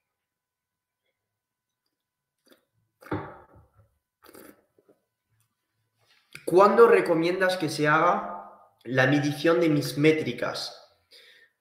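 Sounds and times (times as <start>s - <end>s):
person sipping a drink: 2.4s - 3.2s, 4.2s - 5.0s
speech: 6.5s - 10.8s.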